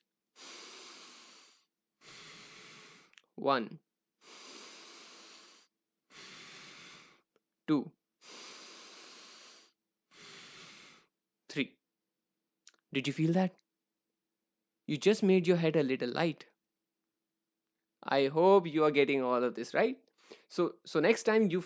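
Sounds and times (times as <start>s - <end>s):
deep breaths in and slow releases: 0.4s - 3.2s, 4.2s - 7.3s, 8.2s - 11.1s
speech: 3.4s - 3.9s, 7.7s - 8.0s, 11.6s - 11.8s, 12.9s - 13.6s, 14.9s - 16.5s, 18.0s - 21.6s.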